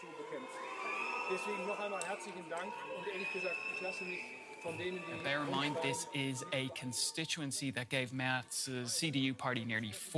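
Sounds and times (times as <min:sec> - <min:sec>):
people shouting: 0:00.0 - 0:07.4
crowd booing a politician: 0:00.0 - 0:07.5
high whistles: 0:00.4 - 0:07.0
speech: 0:01.3 - 0:10.1.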